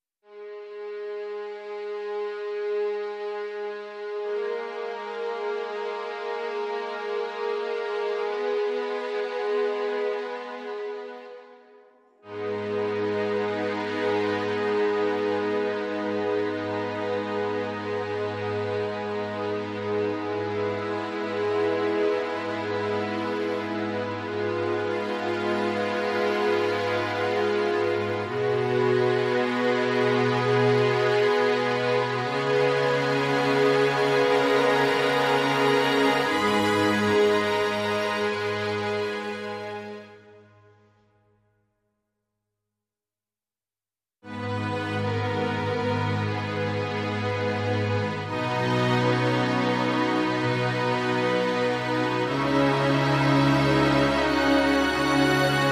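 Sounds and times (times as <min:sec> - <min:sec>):
strings: 0:00.2 - 0:40.5, 0:44.3 - 0:55.6.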